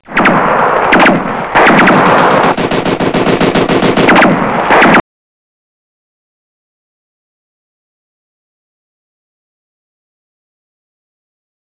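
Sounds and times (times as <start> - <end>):
gunshot: 0.1 - 5.0.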